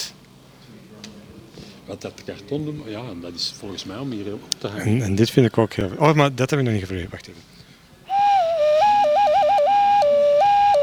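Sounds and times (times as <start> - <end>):
speech: 1.9 - 7.6
ocarina-like whistle blown through a small hole: 8.1 - 10.8.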